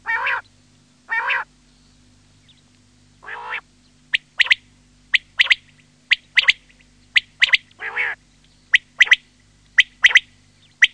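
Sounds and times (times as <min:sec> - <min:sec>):
quail repeating clipped three-note phrases: 0:00.0 - 0:00.5, 0:01.1 - 0:01.5, 0:03.2 - 0:10.9.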